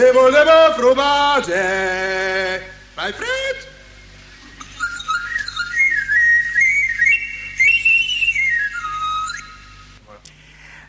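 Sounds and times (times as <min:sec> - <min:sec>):
speech: 0:00.0 - 0:02.4
street vendor's fife calling customers: 0:04.5 - 0:10.0.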